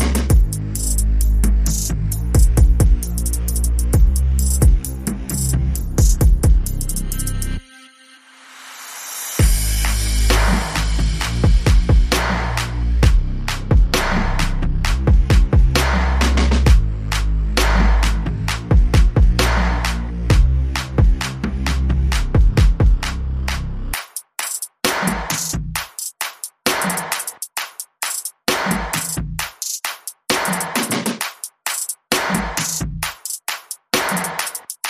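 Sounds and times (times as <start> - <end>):
bass: 0.0 - 7.6, 9.4 - 24.0
drums: 0.0 - 7.6, 9.4 - 34.8.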